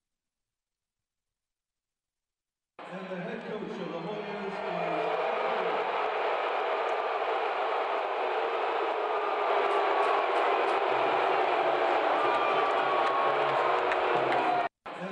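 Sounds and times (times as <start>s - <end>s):
speech: 2.8s - 5.1s
Friar fans roaring in the AMP arena in Providence at a basketball game: 4.6s - 14.7s.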